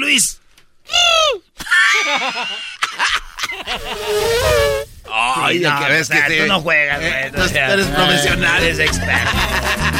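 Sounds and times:
speech: 0.1 - 1.4, 2.1 - 9.9
laughter: 1.6 - 4.1, 8.8 - 9.9
warbling bubbly vocal noises: 3.6 - 5.3
person imitating an elephant trumpeting: 3.7 - 4.9.

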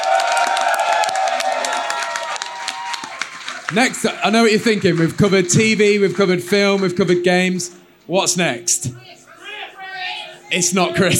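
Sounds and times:
audience cheers and whoops: 0.0 - 6.0
audience applause: 0.0 - 7.0
speech: 3.7 - 9.2, 10.5 - 11.1.

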